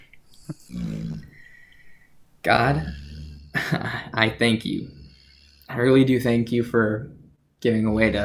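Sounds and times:
dog snoring: 0.4 - 1.6, 2.4 - 6.6
speech: 2.4 - 3.0, 3.7 - 5.0, 5.7 - 8.2.

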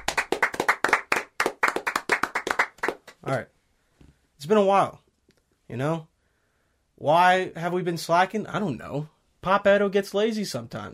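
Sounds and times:
hand clapping: 0.0 - 3.4
speech: 3.3 - 3.6, 4.4 - 5.0, 5.7 - 6.1, 7.0 - 10.9.

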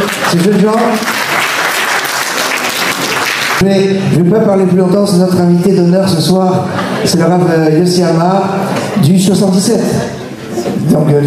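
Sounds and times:
audience applauding loudly: 0.0 - 3.7
speech: 0.1 - 1.2, 3.6 - 11.2.

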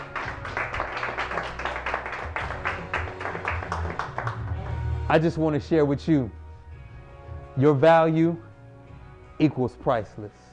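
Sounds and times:
audience hand clapping: 0.0 - 5.0
speech: 5.1 - 6.4, 7.6 - 8.5, 9.4 - 10.5.

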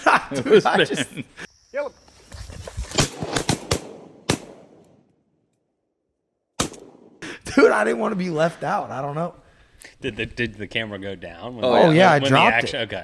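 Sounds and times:
laughter: 0.0 - 1.5
speech: 0.3 - 2.0, 7.6 - 13.0
shotgun shots fired at ducks: 2.9 - 5.1, 6.6 - 7.2.

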